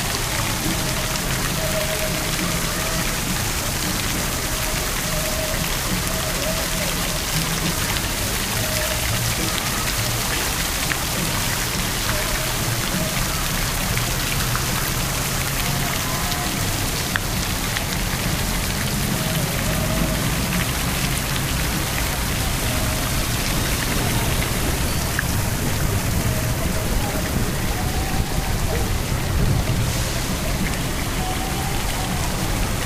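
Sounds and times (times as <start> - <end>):
water splashing in a public fountain near a skating area: 0.0 - 32.8.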